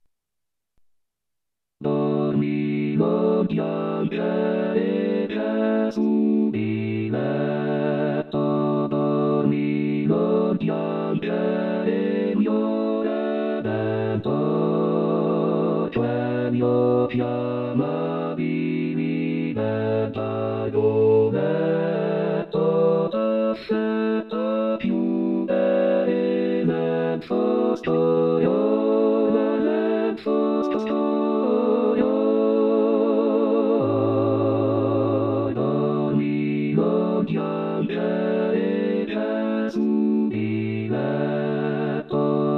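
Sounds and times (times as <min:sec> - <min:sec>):
choir singing: 0:01.8 - 0:42.5.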